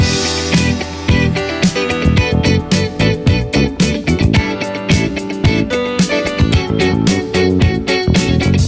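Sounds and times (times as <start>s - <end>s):
music loop: 0.0s - 8.6s.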